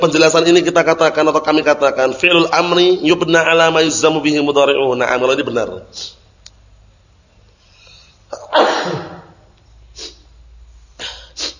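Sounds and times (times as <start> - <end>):
speech: 0.0 - 6.2, 8.5 - 9.1
sneeze: 8.3 - 10.2, 11.0 - 11.5.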